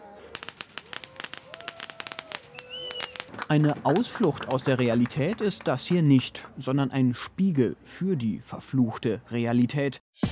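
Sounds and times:
string of firecracker bangs: 0:00.0 - 0:03.5
faint whistling tone: 0:02.5 - 0:03.2
speech: 0:03.5 - 0:10.3.

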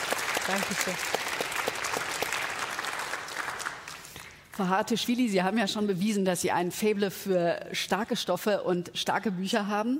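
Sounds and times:
audience applause: 0:00.0 - 0:04.2
speech: 0:00.5 - 0:01.2, 0:04.6 - 0:09.9.

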